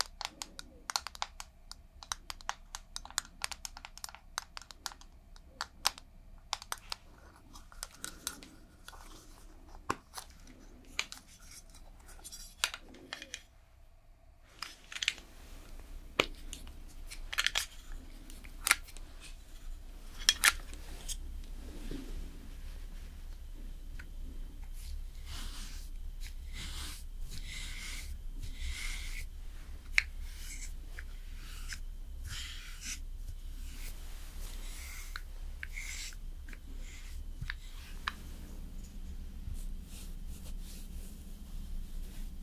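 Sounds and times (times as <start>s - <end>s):
makeup application clicks and taps: 0.0s - 7.0s
steady low hum: 7.0s - 42.4s.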